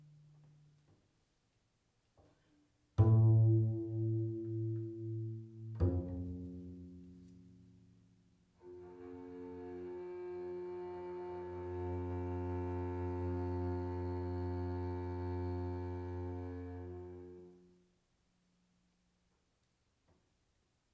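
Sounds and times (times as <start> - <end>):
prepared double bass: 3.0 - 7.8, 8.7 - 17.5.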